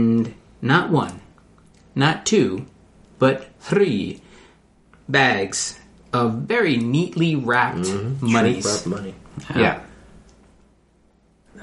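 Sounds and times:
speech: 0.0s - 1.2s, 2.0s - 4.2s, 5.1s - 9.9s
sharp inhale of an aborted sneeze: 4.2s - 4.7s.

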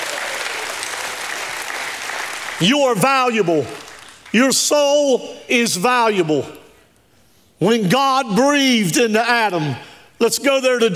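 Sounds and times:
audience applause: 0.0s - 2.6s
speech: 2.6s - 6.6s, 7.6s - 10.9s.

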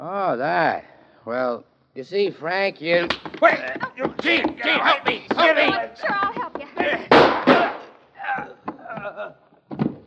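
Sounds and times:
speech: 0.3s - 7.1s
gunshot in a radio drama mystery: 7.1s - 7.9s.

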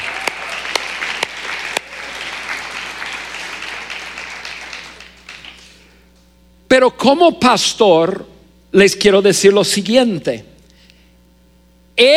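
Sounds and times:
audience applause: 0.0s - 5.9s
speech: 6.7s - 10.5s, 12.0s - 12.1s.

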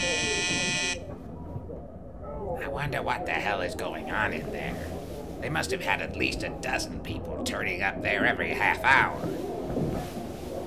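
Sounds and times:
train communication bell buzzing: 0.0s - 1.0s
speech: 1.8s - 10.1s.

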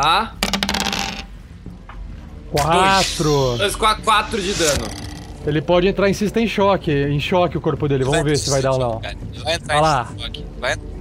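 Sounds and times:
speech: 0.0s - 0.4s, 2.5s - 10.9s
dice being rolled: 0.4s - 1.3s.

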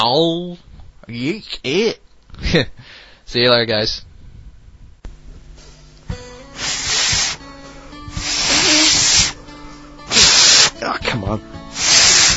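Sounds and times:
speech: 0.0s - 4.1s, 10.8s - 11.5s
failed attempt at whistling: 6.6s - 7.4s, 8.1s - 9.4s, 10.1s - 10.8s, 11.7s - 12.3s.

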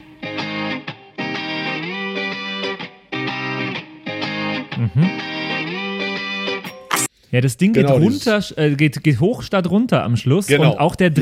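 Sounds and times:
distorted electric guitar riff: 0.0s - 7.1s
speech: 4.9s - 5.2s, 7.3s - 11.1s.

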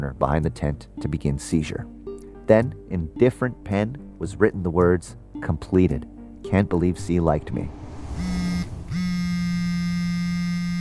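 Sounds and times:
speech: 0.0s - 8.4s
mobile phone buzzing in pocket: 8.9s - 10.7s.

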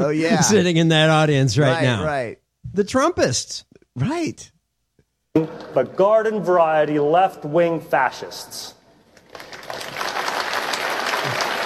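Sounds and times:
speech: 0.0s - 4.5s, 5.3s - 10.0s
crowd clapping: 9.2s - 11.6s.

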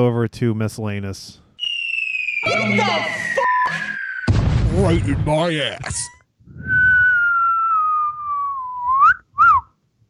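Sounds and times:
speech: 0.0s - 1.4s, 2.5s - 3.8s, 4.8s - 6.7s
human catcall wolf whistle: 1.6s - 4.3s, 6.5s - 9.8s.

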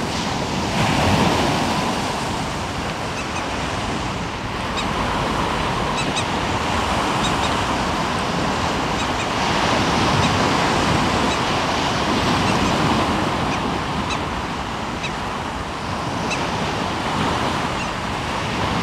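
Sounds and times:
low wind rumble: 0.0s - 18.8s
waves washing along the Omø coastline: 0.0s - 18.8s
faint short bright bird calls: 5.8s - 6.4s, 7.0s - 7.7s, 8.8s - 11.5s, 12.3s - 14.3s, 14.9s - 15.3s, 17.7s - 18.0s.

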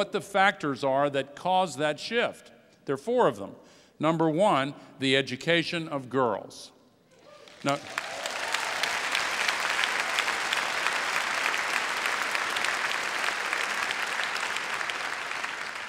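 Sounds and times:
speech: 0.0s - 6.8s, 7.6s - 8.1s
large audience cheering and applauding: 7.2s - 15.8s.

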